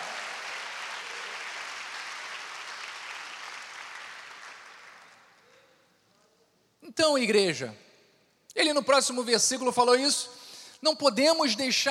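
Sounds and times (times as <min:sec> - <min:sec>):
audience applause: 0:00.0 - 0:05.3
speech: 0:06.9 - 0:07.8, 0:08.6 - 0:11.9.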